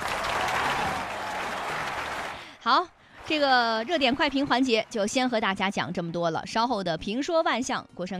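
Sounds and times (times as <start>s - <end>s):
crowd applause: 0.0s - 2.5s, 3.2s - 5.3s
speech: 2.6s - 8.1s.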